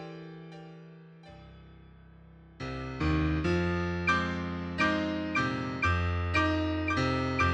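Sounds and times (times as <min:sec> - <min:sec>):
piano triad: 0:02.7 - 0:07.5.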